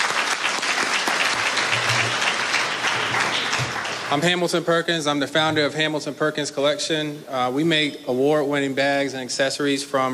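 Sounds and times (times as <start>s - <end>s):
audience applause: 0.0s - 4.4s
speech: 4.1s - 10.1s.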